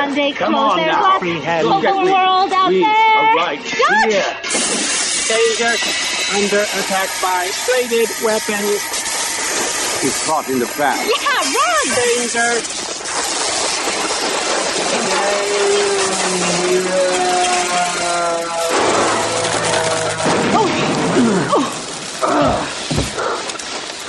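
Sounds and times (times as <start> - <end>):
speech: 0.0 - 4.7, 5.3 - 9.0, 10.0 - 12.9, 14.9 - 17.4
robot exploding: 4.4 - 7.4, 11.4 - 23.2.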